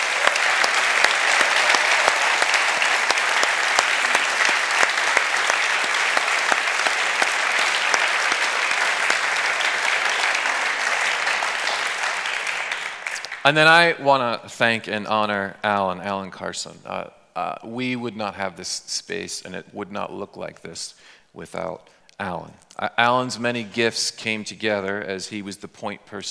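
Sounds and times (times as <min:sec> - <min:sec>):
audience applause: 0:00.0 - 0:13.5
speech: 0:13.4 - 0:26.2.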